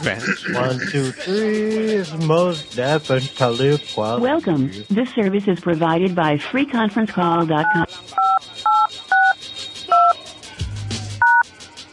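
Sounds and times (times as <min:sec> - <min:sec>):
laughter: 0:00.0 - 0:03.0
speech: 0:00.0 - 0:08.3
telephone keypad DTMF tones dialing a conference call number: 0:07.6 - 0:10.2, 0:11.2 - 0:11.4.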